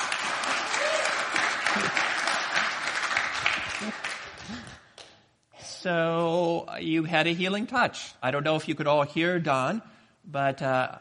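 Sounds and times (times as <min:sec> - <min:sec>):
audience clapping with enthusiasm: 0:00.0 - 0:05.1
speech: 0:05.8 - 0:10.9.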